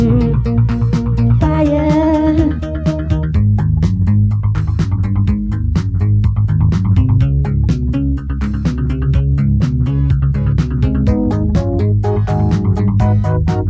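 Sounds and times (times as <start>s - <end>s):
piano rhythm on tape: 0.0s - 13.6s.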